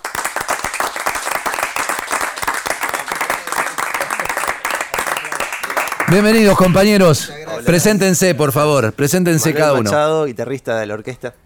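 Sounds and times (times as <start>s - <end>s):
loud applause welcoming the orchestra: 0.0s - 7.3s
speech: 6.1s - 11.4s.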